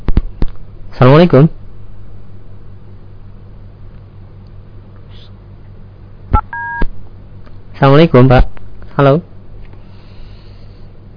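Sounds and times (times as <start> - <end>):
speech: 1.0 - 1.6, 7.8 - 9.3
short electronic telephone tones: 6.4 - 6.9.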